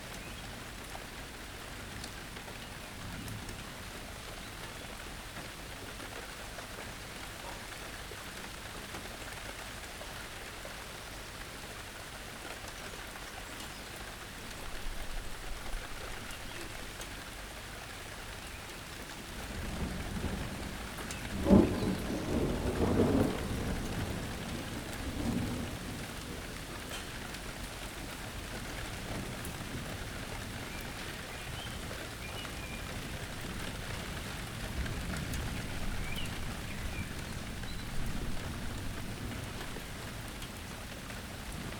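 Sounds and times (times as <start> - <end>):
rain: 0.0 - 41.7
thunder: 19.7 - 26.1.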